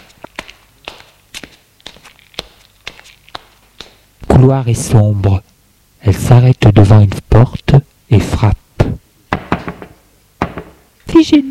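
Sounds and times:
footsteps along a corridor: 0.0s - 4.1s
speech: 4.4s - 5.4s, 6.0s - 8.6s.

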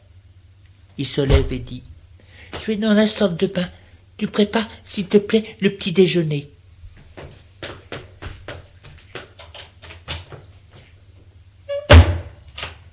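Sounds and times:
speech: 1.0s - 6.5s
bathroom door closing: 1.3s - 1.7s, 11.7s - 12.7s.

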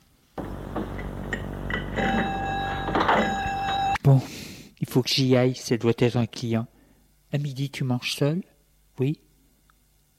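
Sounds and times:
shop door opening: 0.4s - 4.0s
speech: 4.1s - 6.7s, 7.3s - 9.2s.

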